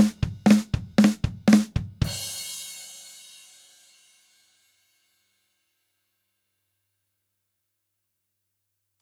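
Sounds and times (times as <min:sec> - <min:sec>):
drum kit: 0:00.0 - 0:03.8.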